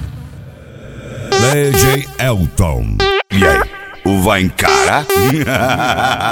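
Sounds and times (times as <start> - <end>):
electronic car audio music: 1.1 - 5.7
laughter: 4.3 - 6.3.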